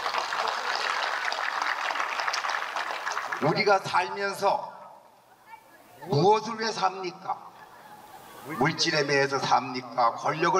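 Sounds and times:
audience applause: 0:00.0 - 0:03.6
speech: 0:03.4 - 0:04.7, 0:06.0 - 0:07.5, 0:08.4 - 0:10.5.

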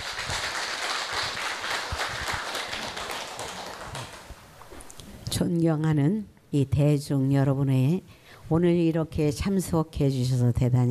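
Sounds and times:
audience applause: 0:00.0 - 0:04.4
speech: 0:05.4 - 0:10.8.

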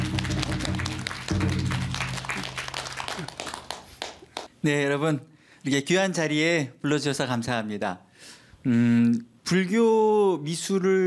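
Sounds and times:
audience applause: 0:00.0 - 0:04.5
speech: 0:04.6 - 0:11.0.

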